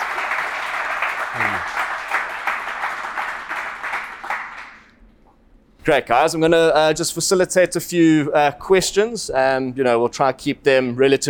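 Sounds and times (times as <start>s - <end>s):
audience applause: 0.0s - 4.9s
speech: 5.8s - 11.2s.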